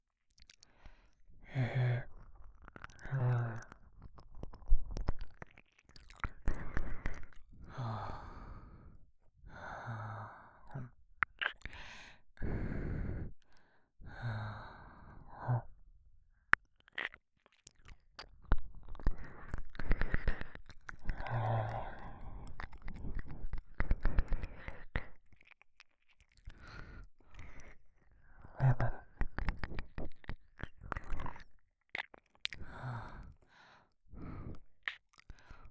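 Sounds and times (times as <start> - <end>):
man breathing heavily: 0.6 - 3.8, 6.4 - 16.5, 19.0 - 25.2, 26.5 - 29.9, 32.5 - 34.7, 35.3 - 35.7
man licking ear on left side: 2.0 - 7.6, 11.2 - 12.1, 16.6 - 32.8.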